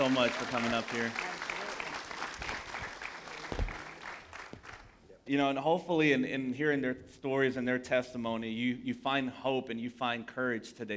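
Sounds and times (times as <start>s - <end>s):
speech: 0.0s - 1.3s, 5.3s - 10.9s
audience applause for panel: 0.0s - 5.0s.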